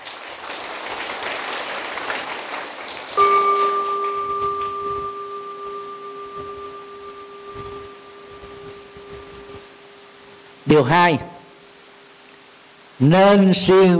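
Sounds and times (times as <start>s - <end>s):
big round of applause: 0.0s - 4.9s
speech: 10.7s - 11.3s, 13.0s - 13.9s.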